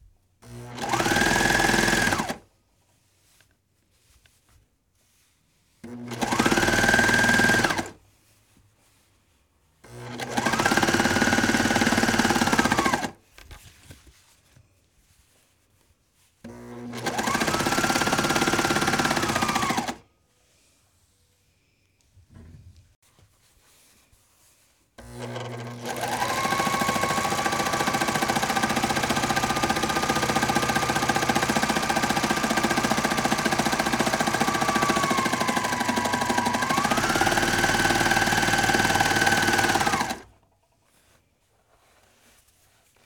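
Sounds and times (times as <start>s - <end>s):
serger sewing machine: 0.4s - 2.4s, 5.8s - 8.0s, 9.8s - 13.2s, 16.4s - 20.0s, 25.0s - 40.4s.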